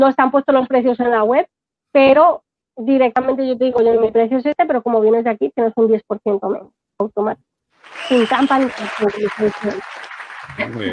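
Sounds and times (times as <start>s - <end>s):
speech: 0.0s - 10.9s
applause sound effect: 7.8s - 10.9s.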